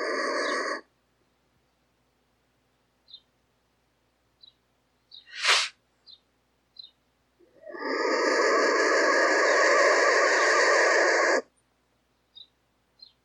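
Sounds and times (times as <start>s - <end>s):
black vulture calling: 0.0s - 0.9s, 7.5s - 11.5s.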